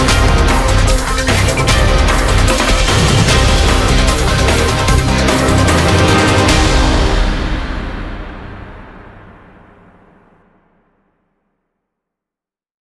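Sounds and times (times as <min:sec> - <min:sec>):
space rock combat intro music: 0:00.0 - 0:10.2.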